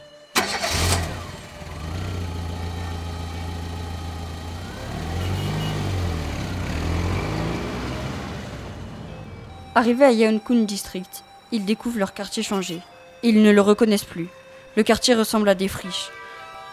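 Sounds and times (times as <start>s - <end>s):
taxi engine cranking, idling and revving: 0.4s - 10.0s
speech: 9.8s - 16.2s.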